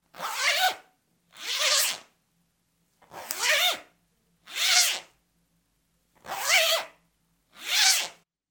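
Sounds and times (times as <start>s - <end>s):
zipper fastener: 0.1s - 2.1s, 3.0s - 3.9s, 4.5s - 5.2s, 6.2s - 8.2s.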